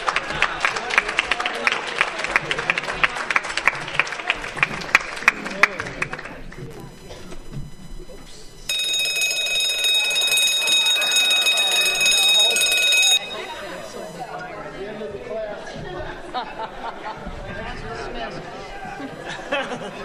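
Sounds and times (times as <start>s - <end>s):
murmuring chatter and scattered voices: 0.0s - 20.0s
crowd ringing small handbells: 8.6s - 14.8s
laughter: 9.1s - 14.2s, 15.4s - 20.0s.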